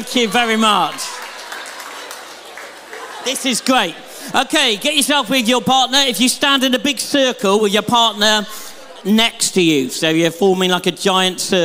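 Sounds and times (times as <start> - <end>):
speech: 0.0 - 1.1, 3.2 - 11.6
audience clapping: 0.0 - 3.9.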